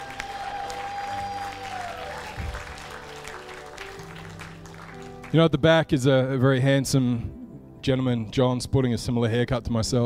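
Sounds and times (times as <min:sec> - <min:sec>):
audience applause: 0:00.0 - 0:05.3
speech: 0:05.3 - 0:10.0.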